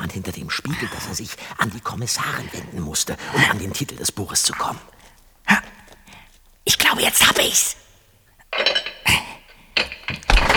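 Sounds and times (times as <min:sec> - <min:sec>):
speech: 0:00.1 - 0:05.6, 0:06.7 - 0:07.8
heavy metal door bolt sliding: 0:08.6 - 0:10.5.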